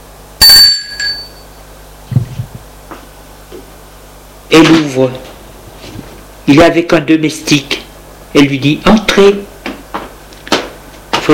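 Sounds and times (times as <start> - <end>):
doorbell ringing: 0.4 - 1.6
speech: 4.5 - 5.3, 6.5 - 9.5.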